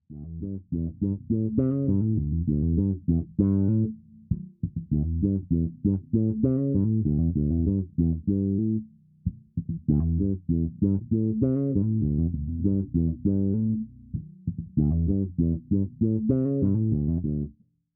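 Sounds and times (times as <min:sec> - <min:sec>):
Zoom B2 Four bass effects: 0:00.0 - 0:17.6.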